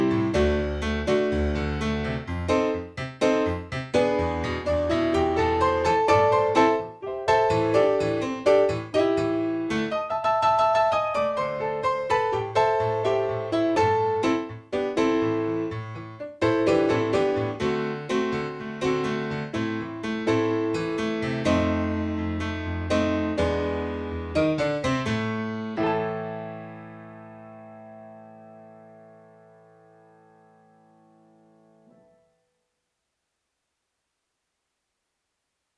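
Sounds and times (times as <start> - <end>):
piano: 0.0 - 32.7.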